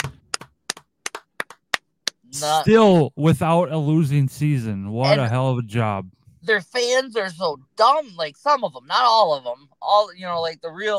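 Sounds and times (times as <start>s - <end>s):
sparse handclaps from a few people for Mike Tomlin: 0.0s - 2.2s
speech: 2.3s - 10.9s.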